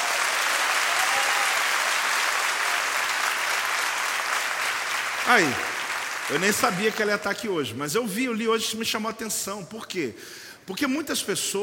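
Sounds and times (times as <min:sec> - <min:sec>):
audience applause: 0:00.0 - 0:07.2
speech: 0:05.3 - 0:05.7, 0:06.3 - 0:11.6.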